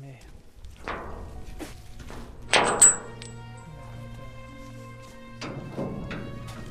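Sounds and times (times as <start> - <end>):
low steady hum: 0.0 - 6.6
rusty metal entrance gate clanking shut: 0.7 - 4.0, 5.3 - 6.6.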